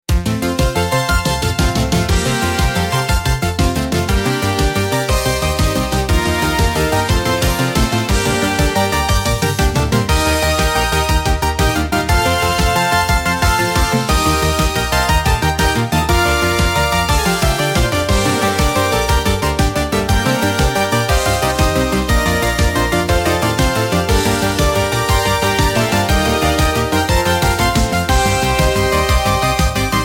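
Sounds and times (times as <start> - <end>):
epic finale music: 1.2 - 30.0.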